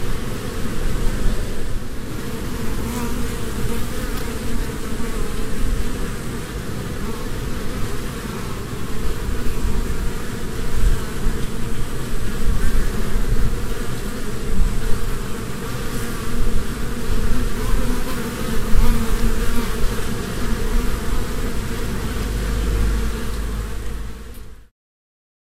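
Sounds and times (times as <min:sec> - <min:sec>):
honey bee swarm humming at a beehive: 0:00.0 - 0:24.6.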